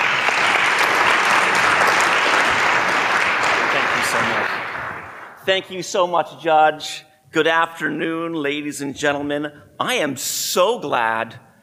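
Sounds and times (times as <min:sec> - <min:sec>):
audience applause welcoming a speaker in Alaska: 0:00.0 - 0:05.4
speech: 0:05.5 - 0:11.5.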